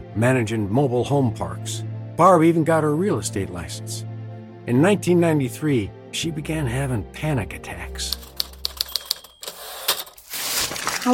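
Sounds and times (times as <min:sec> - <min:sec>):
speech: 0:00.2 - 0:04.1, 0:04.7 - 0:08.3
typewriter keys clacking while typing a lease: 0:08.1 - 0:10.2.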